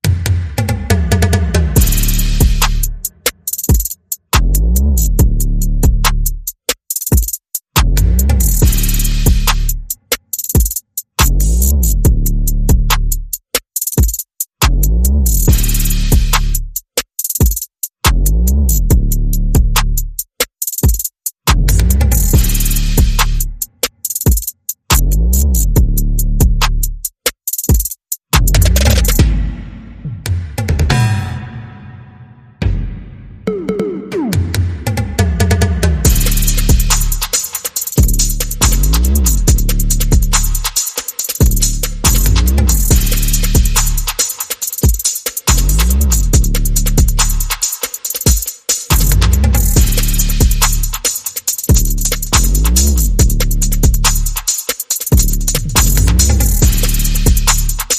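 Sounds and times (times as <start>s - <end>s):
bass: 0.0s - 3.1s, 4.3s - 6.5s, 7.8s - 10.0s, 11.2s - 13.4s, 14.6s - 16.8s, 18.1s - 20.2s, 21.5s - 23.8s, 24.9s - 27.1s, 28.4s - 31.2s, 32.6s - 37.4s, 38.0s - 40.8s, 41.4s - 44.2s, 45.5s - 47.6s, 48.9s - 51.1s, 51.7s - 54.5s, 55.1s - 57.9s
percussion: 0.0s - 32.0s, 32.6s - 57.9s.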